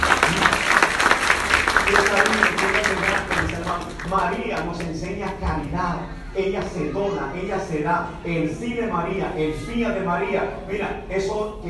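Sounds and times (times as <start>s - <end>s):
audience clapping: 0.0s - 5.4s
speech: 4.1s - 11.6s.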